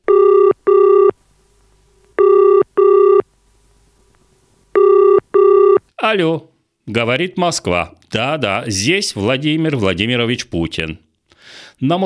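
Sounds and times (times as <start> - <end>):
telephone ringing: 0.0 - 5.9
speech: 6.0 - 12.0.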